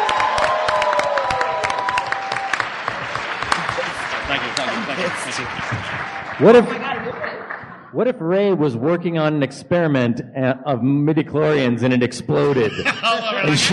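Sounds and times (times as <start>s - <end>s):
audience cheers and whoops: 0.0s - 3.2s
audience applause: 0.0s - 7.9s
laughter: 3.5s - 8.5s, 12.3s - 13.7s
speech: 4.3s - 6.8s, 7.9s - 13.7s.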